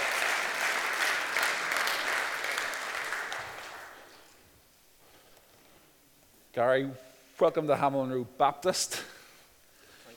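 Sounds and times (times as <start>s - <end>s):
round of applause: 0.0s - 4.3s
speech: 6.6s - 9.1s.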